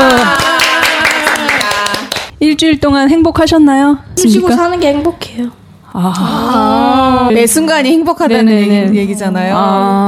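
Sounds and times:
group clapping to welcome a guest: 0.0s - 2.3s
speech: 2.6s - 10.0s.

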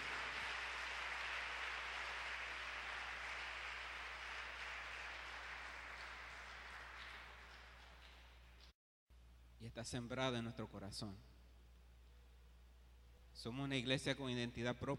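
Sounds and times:
church audience applauding a teacher: 0.0s - 8.4s
speech: 9.6s - 11.3s, 13.4s - 14.9s.

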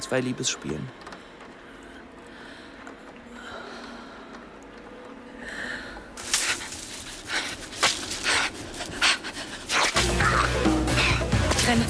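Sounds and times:
speech: 0.0s - 1.1s
heavy panting: 6.3s - 11.5s.

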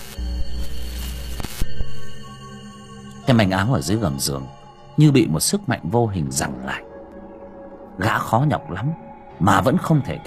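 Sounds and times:
flickering light bulb buzzing: 0.0s - 3.2s
speech: 3.3s - 6.9s, 8.0s - 10.2s.

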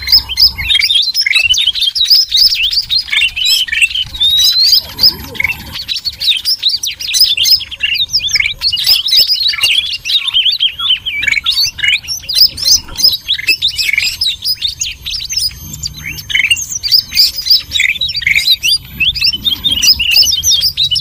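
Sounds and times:
noisy birds chirping in a dense chorus used as a lure: 0.0s - 20.9s.

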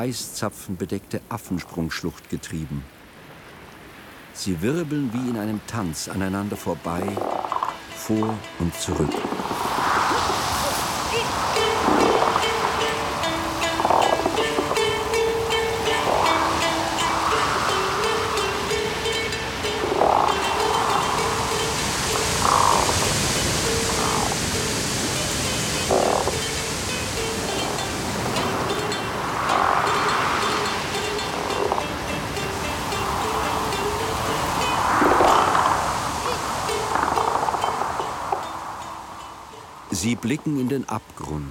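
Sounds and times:
speech: 0.0s - 3.0s, 4.4s - 7.4s, 8.0s - 9.7s, 40.3s - 41.4s
roaring waterfall with an ice-covered rock ledge in its midst: 0.0s - 41.4s
storm wind howling: 7.2s - 39.9s.

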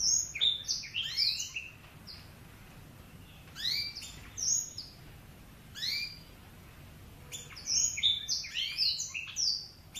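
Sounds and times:
Oriental magpie-robin singing: 0.0s - 2.4s, 3.1s - 5.0s, 5.7s - 6.4s, 7.2s - 9.9s.

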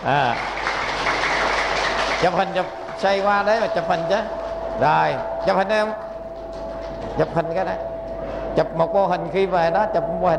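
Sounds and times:
speech: 0.0s - 0.6s, 2.2s - 6.0s, 7.0s - 10.3s
audience applause: 0.0s - 7.4s.

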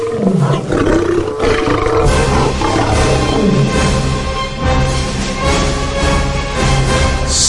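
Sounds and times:
trapped lion roaring furiously: 0.0s - 4.2s
heavy low background: 0.0s - 7.3s.

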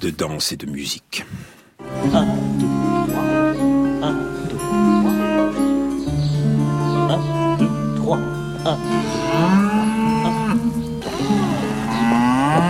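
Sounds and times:
speech: 0.0s - 2.7s
cow mooing loudly in a courtyard: 2.0s - 5.4s, 6.7s - 12.6s.

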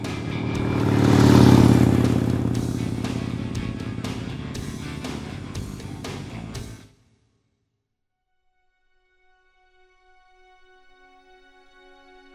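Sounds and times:
motorcycle engine accelerating, shifting up to fifth gear: 0.0s - 6.8s.

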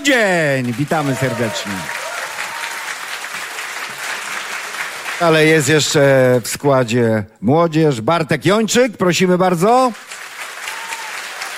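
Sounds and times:
speech: 0.0s - 2.0s, 5.2s - 10.2s
audience applause greeting a band's drummer: 0.0s - 6.0s, 9.8s - 11.5s.

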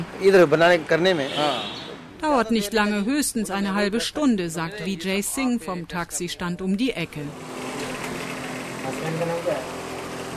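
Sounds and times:
speech: 0.2s - 7.6s, 8.9s - 9.8s
fans whirring: 2.2s - 10.3s.

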